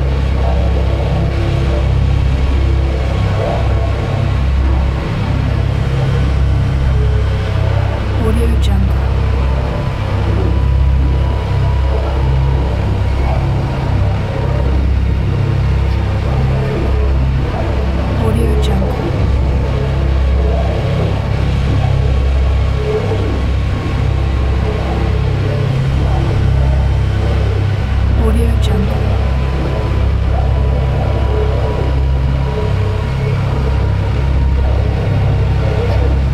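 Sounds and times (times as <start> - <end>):
dark aggressive soundscape: 0.0 - 36.3.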